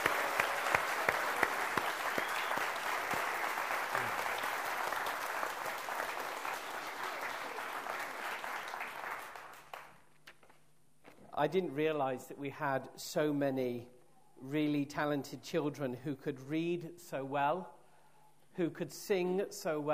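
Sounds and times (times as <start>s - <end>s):
audience applause: 0.0s - 10.0s
speech: 11.4s - 17.8s, 18.6s - 19.9s.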